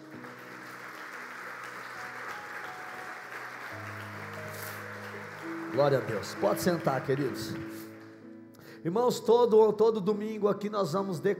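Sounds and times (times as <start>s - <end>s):
audience applauding: 0.0s - 8.4s
speech: 5.7s - 7.9s, 8.8s - 11.3s.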